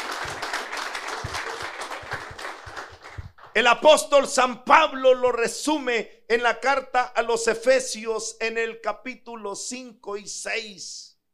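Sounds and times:
audience applause: 0.0s - 3.6s
speech: 3.6s - 11.1s.

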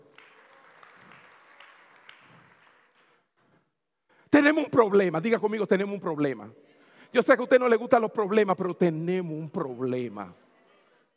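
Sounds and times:
audience applause: 0.0s - 3.2s
speech: 4.3s - 10.4s.

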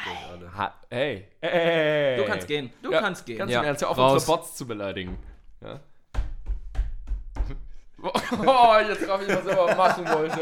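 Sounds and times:
speech: 0.4s - 5.9s, 8.0s - 10.3s
laughter: 1.4s - 2.4s, 8.0s - 10.3s
hand slapping a table: 6.0s - 7.8s.

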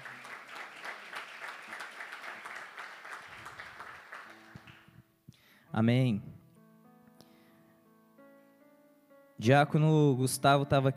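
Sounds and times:
audience applause: 0.0s - 4.9s
speech: 5.8s - 6.3s, 9.4s - 10.9s.

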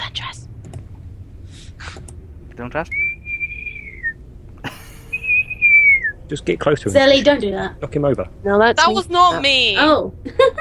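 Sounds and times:
speech: 2.6s - 3.0s, 6.3s - 10.6s
person whistling: 2.9s - 4.2s, 5.0s - 6.2s
laughter: 4.6s - 5.7s, 10.2s - 10.6s.

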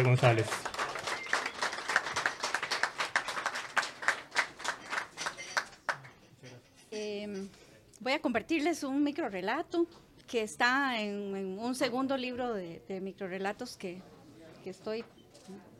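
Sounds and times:
speech: 0.0s - 0.8s, 8.1s - 15.7s
audience applause: 0.0s - 6.0s.

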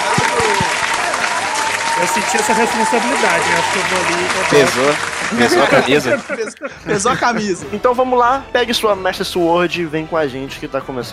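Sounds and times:
applause for guest: 0.0s - 6.4s
laughter: 2.0s - 7.9s
speech: 2.0s - 11.1s.

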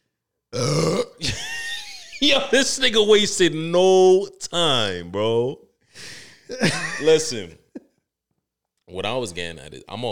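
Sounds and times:
speech: 0.5s - 0.9s, 2.2s - 7.6s, 8.9s - 10.1s
belch-like grunt: 0.5s - 1.3s
loud low guttural burp: 0.5s - 1.4s.

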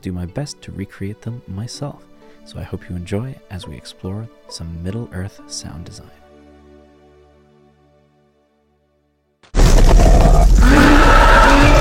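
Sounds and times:
speech: 0.0s - 6.2s
cave troll roar blended from tiger and walrus: 9.6s - 11.7s.

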